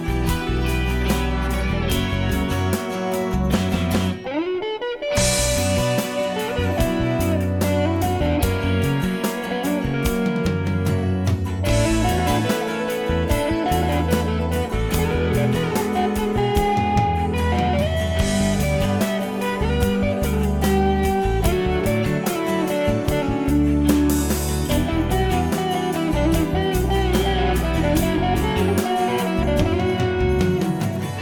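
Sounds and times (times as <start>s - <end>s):
guitar: 0.0s - 31.2s.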